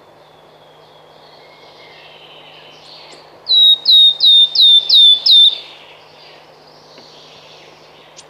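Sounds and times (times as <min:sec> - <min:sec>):
wood warbler singing: 0:00.0 - 0:08.2.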